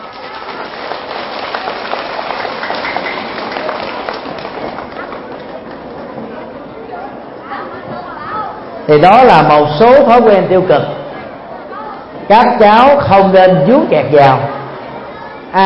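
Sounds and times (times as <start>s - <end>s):
loud applause: 0.0s - 6.6s
speech: 8.9s - 11.0s, 12.3s - 14.5s.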